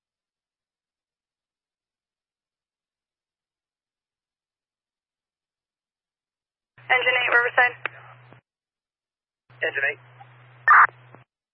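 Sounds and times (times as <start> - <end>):
low steady hum: 6.8 - 8.4, 9.5 - 11.2
speech: 6.9 - 7.9, 9.6 - 10.1
garbled radio transmission burst: 10.7 - 11.0.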